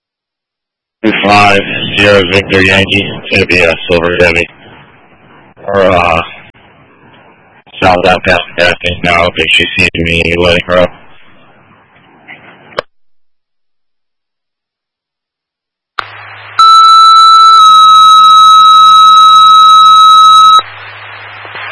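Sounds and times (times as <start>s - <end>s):
dispatch radio static: 1.0s - 4.5s, 7.8s - 11.7s, 16.0s - 21.7s
speech: 1.0s - 4.6s, 5.7s - 6.3s, 7.9s - 11.0s
dispatch radio electronic test tone: 16.6s - 20.7s.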